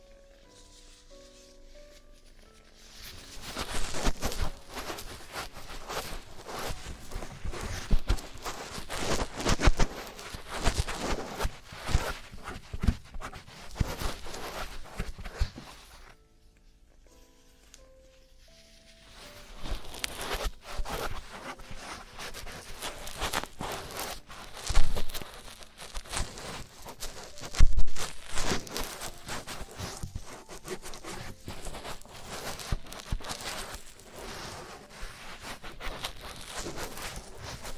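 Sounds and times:
ear cleaning scratching and crackling: 0.0s - 37.7s.

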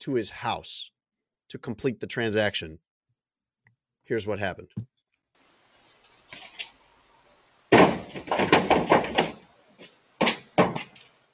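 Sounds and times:
speech: 0.0s - 2.9s, 4.1s - 4.9s
deer crashing into the side of a pickup truck: 7.7s - 9.4s.

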